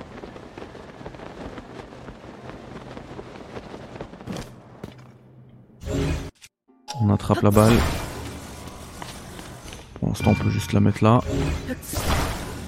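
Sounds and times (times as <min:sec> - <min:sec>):
wind rushing past a paraglider in Zelda Tears of the Kingdom: 0:00.0 - 0:04.3
speech: 0:07.0 - 0:08.1, 0:10.3 - 0:12.2.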